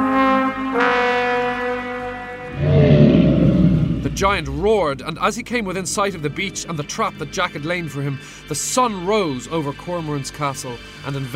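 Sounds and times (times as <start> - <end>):
taunting note blown on a brassy horn: 0.0 - 5.0
speech: 4.2 - 11.3.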